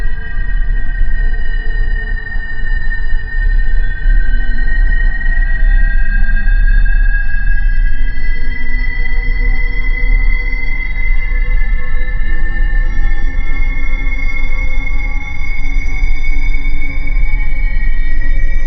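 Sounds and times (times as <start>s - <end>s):
scratchy siren drone: 0.0s - 18.6s.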